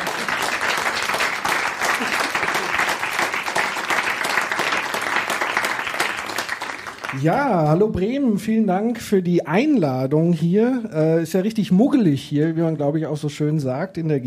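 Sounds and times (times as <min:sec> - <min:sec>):
audience applause: 0:00.0 - 0:07.7
speech: 0:07.2 - 0:14.2.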